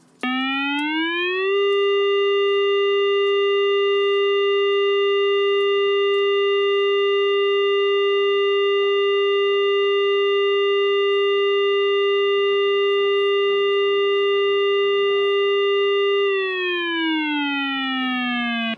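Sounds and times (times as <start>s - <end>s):
siren: 0.2s - 18.7s.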